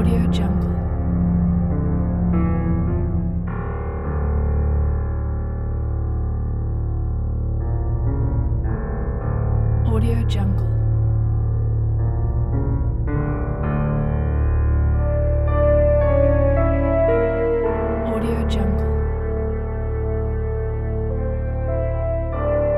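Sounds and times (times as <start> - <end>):
light horror piano ambience: 0.0 - 22.7.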